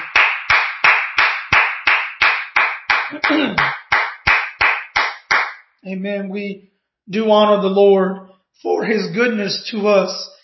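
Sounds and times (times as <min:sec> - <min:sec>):
audience clapping: 0:00.0 - 0:05.6
speech: 0:03.1 - 0:03.8, 0:05.8 - 0:10.4.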